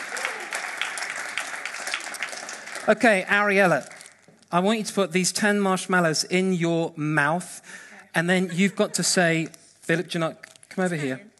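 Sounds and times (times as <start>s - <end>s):
round of applause from an audience: 0.0s - 4.0s
speech: 2.8s - 3.9s, 4.5s - 11.3s.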